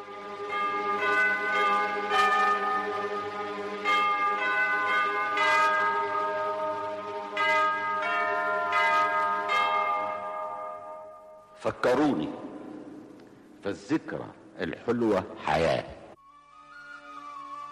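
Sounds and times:
church bell tolling: 0:00.3 - 0:13.2
speech: 0:13.7 - 0:15.9.

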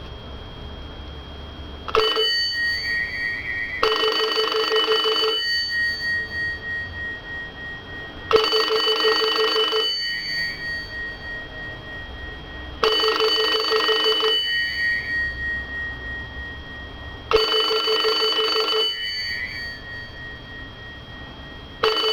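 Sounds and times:
1970s Heraldo rotary desk telephone bell by Citesa ringing: 0:01.9 - 0:22.1.

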